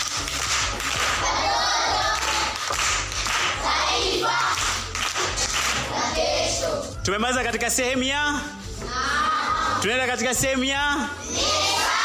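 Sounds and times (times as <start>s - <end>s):
group clapping for a pupil at a primary school class event: 0.0s - 6.3s
speech: 7.1s - 9.2s, 9.8s - 11.5s.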